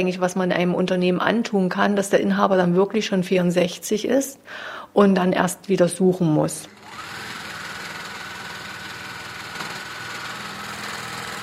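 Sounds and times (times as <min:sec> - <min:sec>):
speech: 0:00.0 - 0:07.1
sewing machine whirring in the back room of Moden Wilke in Lieberose: 0:06.7 - 0:11.4.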